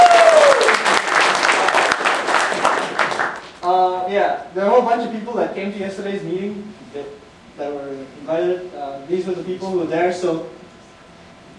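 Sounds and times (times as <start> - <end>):
audience applause: 0.0 - 3.6
speech: 4.1 - 10.6.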